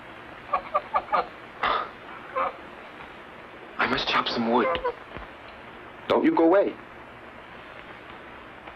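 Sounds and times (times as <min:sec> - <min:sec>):
bird clucking: 0:00.5 - 0:01.3, 0:02.3 - 0:02.6, 0:04.5 - 0:05.0
speech: 0:04.4 - 0:05.1, 0:06.1 - 0:06.8.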